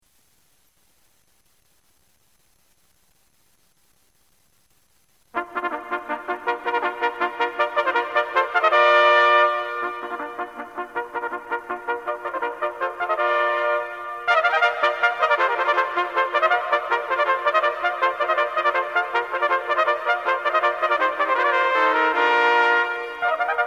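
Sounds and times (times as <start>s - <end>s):
wind band fanfare: 5.4s - 23.6s.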